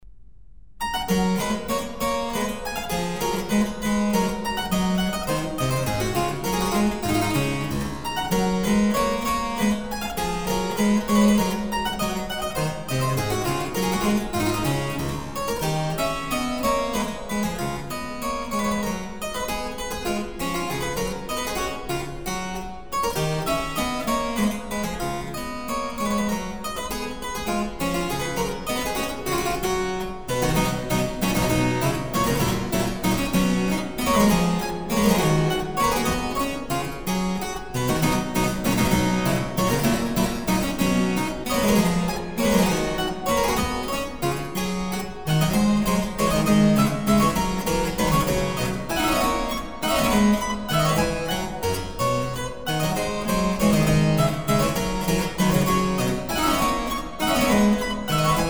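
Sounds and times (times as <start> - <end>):
classical minuet piece: 0.8 - 58.4.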